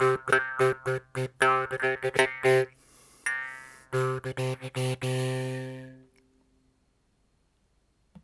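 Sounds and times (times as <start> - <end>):
morsing jaw harp: 0.0 - 5.4.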